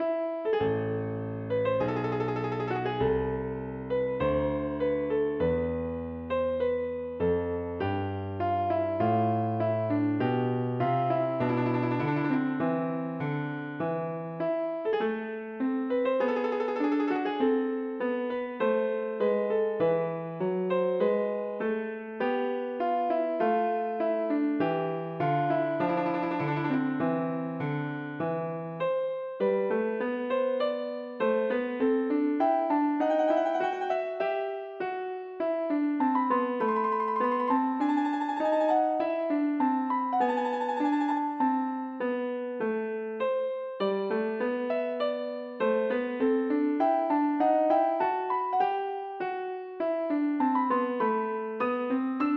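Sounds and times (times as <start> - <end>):
galliard piano improvisation: 0.0 - 43.8, 44.5 - 52.3.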